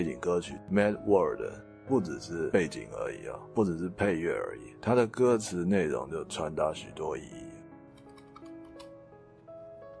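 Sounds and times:
speech: 0.0 - 7.5
typing on a computer keyboard: 8.0 - 8.9.

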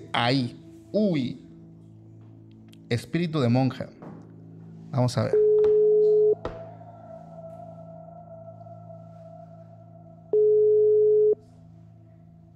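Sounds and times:
speech: 0.2 - 1.4, 2.9 - 4.0, 4.9 - 5.4
telephone line beep from a rejected call: 5.4 - 6.4, 10.4 - 11.4.

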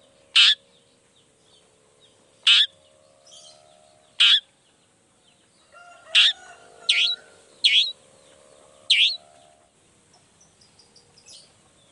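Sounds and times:
low hum: 0.0 - 11.9
long-tailed shrike grating notes: 2.5 - 2.8, 6.2 - 8.0, 8.9 - 9.3.

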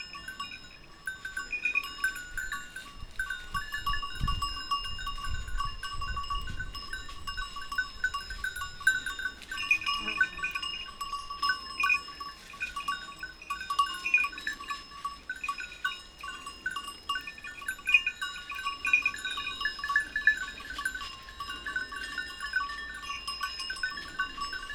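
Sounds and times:
goat bells tinkling: 0.0 - 24.7.

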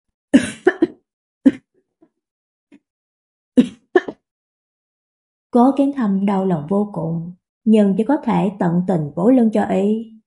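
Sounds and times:
violent coughing fit: 0.4 - 1.6
speech: 3.6 - 3.8, 5.5 - 10.1.

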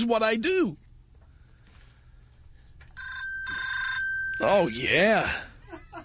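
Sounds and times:
speech: 0.0 - 0.8, 4.4 - 5.5
shrill electronic phone ringtone used as alarm: 3.0 - 5.4.

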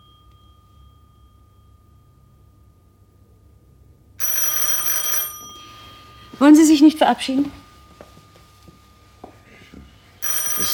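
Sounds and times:
telephone ringing: 4.2 - 6.8, 10.2 - 10.7
speech: 6.4 - 7.6.

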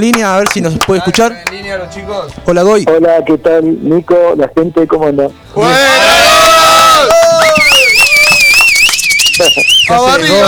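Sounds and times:
speech: 0.0 - 6.3, 9.4 - 10.4
crowd ovation and cheering: 5.6 - 10.4.

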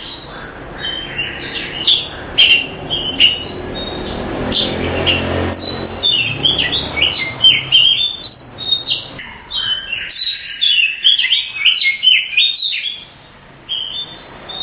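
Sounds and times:
Oriental magpie-robin whistling song: 0.0 - 14.6.

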